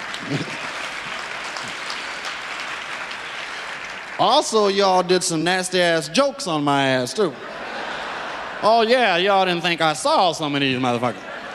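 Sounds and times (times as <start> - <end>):
laughter: 0.0 - 2.2, 6.9 - 11.5
audience applause: 0.0 - 5.4
speech: 0.2 - 0.5, 4.2 - 7.5, 8.6 - 11.3.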